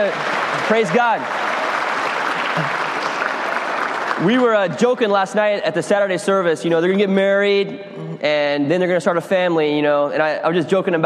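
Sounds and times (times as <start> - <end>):
speech: 0.0 - 1.4, 2.6 - 2.8, 4.2 - 11.0
church audience applauding: 0.0 - 5.2.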